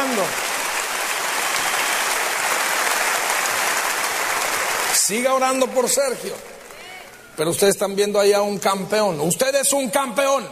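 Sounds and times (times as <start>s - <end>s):
audience applauding: 0.0s - 7.5s
speech: 0.2s - 0.5s, 5.1s - 6.6s, 7.4s - 10.4s.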